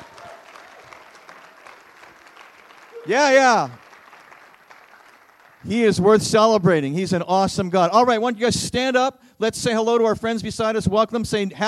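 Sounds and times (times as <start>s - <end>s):
crowd cheering and applause: 0.0s - 6.6s
speech: 3.0s - 3.8s, 5.6s - 11.6s.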